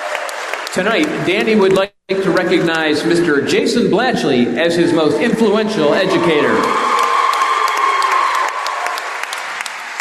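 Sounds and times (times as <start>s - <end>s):
crowd applause and cheering for basketball player number 33 at a game: 0.0s - 2.8s, 5.7s - 9.9s
speech: 0.7s - 6.9s.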